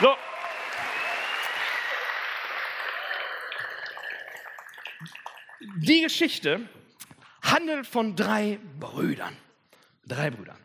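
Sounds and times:
speech: 0.0s - 0.2s, 5.9s - 6.8s, 7.6s - 9.4s, 10.1s - 10.6s
audience applause: 0.0s - 5.6s.

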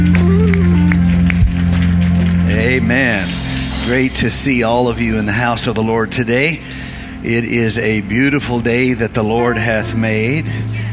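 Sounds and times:
audience hand clapping: 0.0s - 3.4s
speech: 2.8s - 3.3s, 3.9s - 10.8s.

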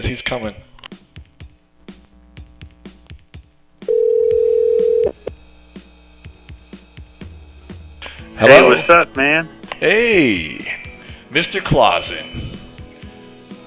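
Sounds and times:
speech: 0.0s - 0.7s, 8.4s - 10.7s, 11.3s - 12.4s
telephone dial tone: 3.8s - 5.3s.

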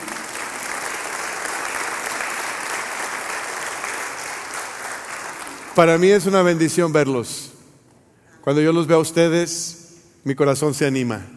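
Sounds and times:
audience applause: 0.0s - 6.1s
speech: 5.8s - 7.5s, 8.4s - 11.3s.

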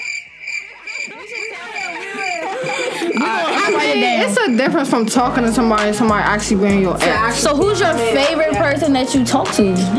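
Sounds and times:
crickets chirping: 0.0s - 6.2s
laughter: 0.0s - 8.9s
speech: 3.2s - 9.9s.

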